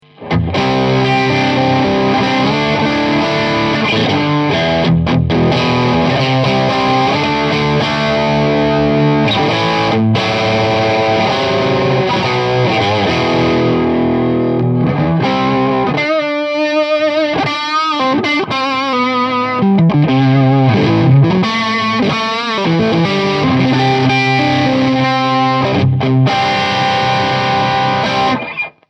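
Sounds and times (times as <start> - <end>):
Stratocaster high-gain electric guitar: 0.0 - 28.8.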